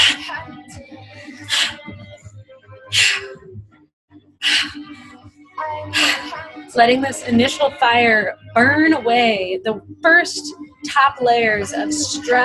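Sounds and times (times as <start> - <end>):
forceful breaths in a guided breathwork session: 0.0 - 0.4, 1.2 - 2.1, 2.9 - 3.5, 4.4 - 5.2, 5.9 - 6.5
soft low droning music bed: 0.0 - 12.4
speech: 6.8 - 12.4.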